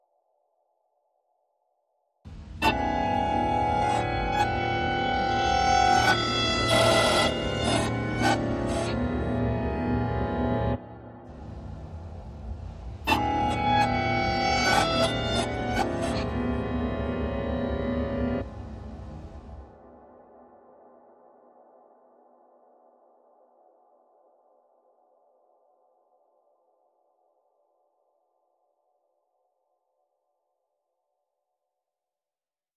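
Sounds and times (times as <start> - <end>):
granular piano effect: 2.3 - 19.6.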